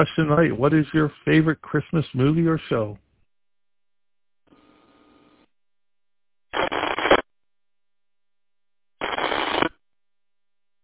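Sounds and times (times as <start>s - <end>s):
speech: 0.0s - 3.0s
ham radio transmitter keyed up too far from the repeater: 6.6s - 7.2s, 9.0s - 9.7s.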